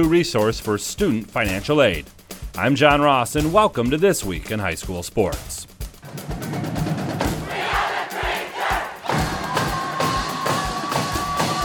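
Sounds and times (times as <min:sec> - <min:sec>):
speech: 0:00.0 - 0:06.3
Traverse City West student section cheering and chanting at Battle of the Fans: 0:07.3 - 0:11.6.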